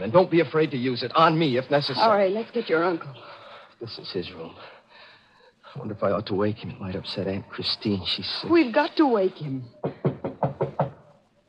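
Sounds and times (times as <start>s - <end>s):
speech: 0.0s - 4.8s, 5.7s - 10.0s
knocking on a bedroom door: 9.8s - 11.0s.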